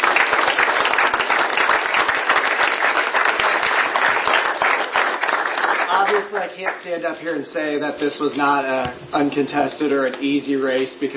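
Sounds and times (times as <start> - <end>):
audience applause: 0.0 - 6.8
speech: 6.3 - 11.1.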